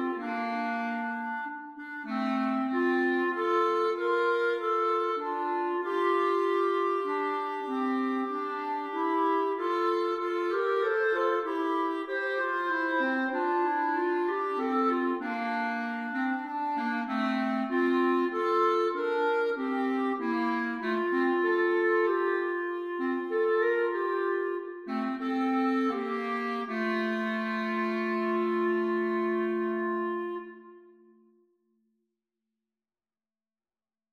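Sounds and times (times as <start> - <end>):
clarinet duet: 0.0 - 31.5.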